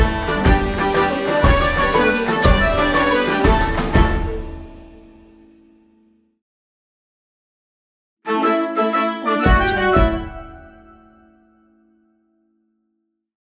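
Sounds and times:
funny tavern song: 0.0 - 5.2, 8.3 - 11.1.

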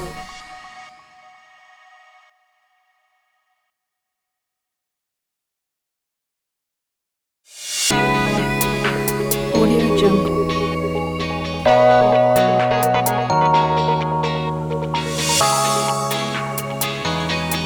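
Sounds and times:
abstract ambient drum kit: 7.9 - 13.9, 15.0 - 17.6.

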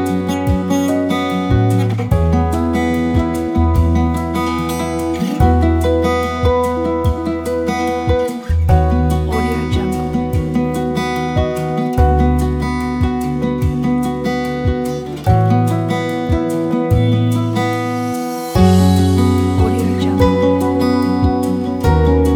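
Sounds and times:
folk guitar ballad: 0.0 - 22.3.

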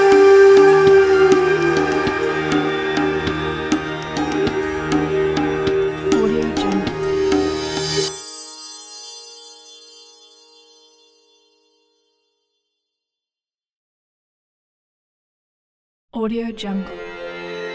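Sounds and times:
inspirational Indian music: 0.0 - 11.9.

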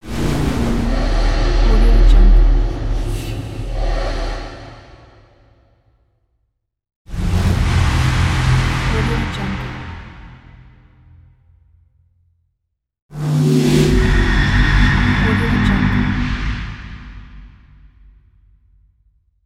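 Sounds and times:
dark horror music: 0.0 - 5.6, 7.1 - 11.5, 13.1 - 18.3.

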